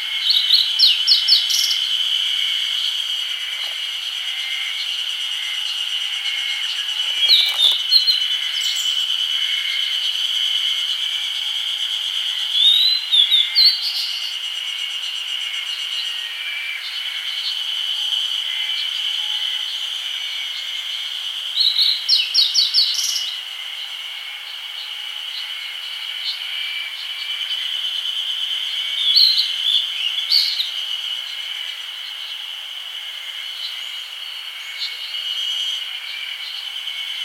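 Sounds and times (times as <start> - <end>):
grey bunting calling: 0.0 - 9.7
insect drone: 0.0 - 37.2.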